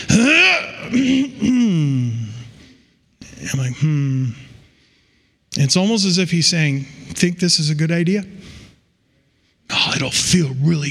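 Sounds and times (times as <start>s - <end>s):
voice imitating a throat clear: 0.0s - 2.3s
speech: 5.7s - 8.6s, 9.7s - 10.8s.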